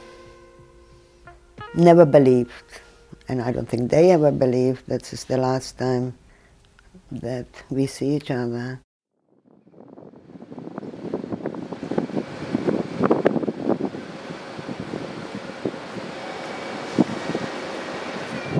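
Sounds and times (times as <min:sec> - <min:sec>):
speech: 0:01.8 - 0:06.2, 0:07.1 - 0:08.8
trains at a railway station: 0:10.9 - 0:18.5.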